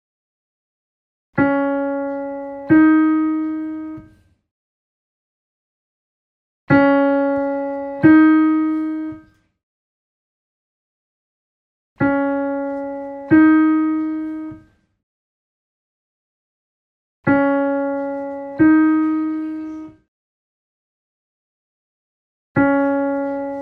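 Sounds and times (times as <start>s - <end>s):
piano: 1.4s - 4.4s, 6.7s - 9.6s, 12.0s - 14.9s, 17.2s - 20.1s, 22.6s - 23.5s.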